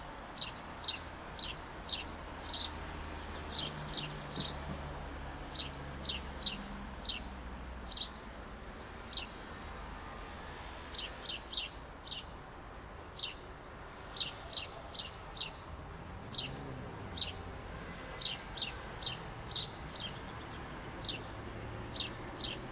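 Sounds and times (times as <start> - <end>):
traffic rumble on the outskirts of Verona: 0.0 - 22.7
bird chirping on a balcony on the outskirts of Verona: 0.4 - 4.6, 5.5 - 7.3, 7.9 - 8.2, 8.9 - 9.4, 11.0 - 15.6, 16.3 - 17.4, 18.2 - 22.7.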